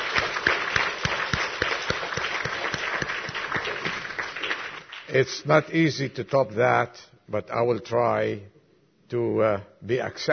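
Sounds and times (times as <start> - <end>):
audience applause: 0.0 - 5.1
speech: 5.1 - 8.5, 9.1 - 10.3.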